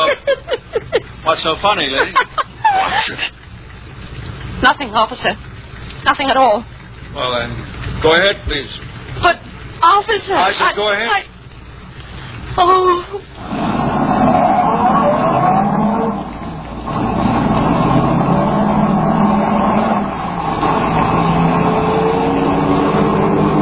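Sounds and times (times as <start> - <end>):
laughter: 0.0 - 3.4
speech: 1.3 - 3.4, 4.6 - 11.3, 12.6 - 13.6
car braking and stopping fast: 13.4 - 23.5.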